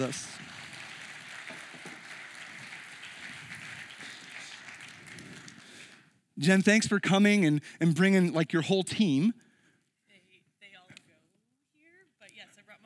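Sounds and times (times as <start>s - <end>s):
speech: 0.0s - 0.4s, 6.4s - 9.4s
crowd applause: 0.0s - 6.1s.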